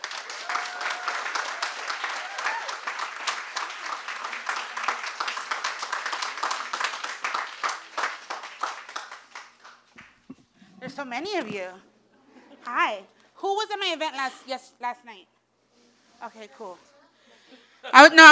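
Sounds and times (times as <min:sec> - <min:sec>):
audience applause welcoming a poet and body-positivity activist at an evening event: 0:00.0 - 0:09.8
speech: 0:11.0 - 0:11.9, 0:12.7 - 0:15.3, 0:16.2 - 0:16.9, 0:18.0 - 0:18.3.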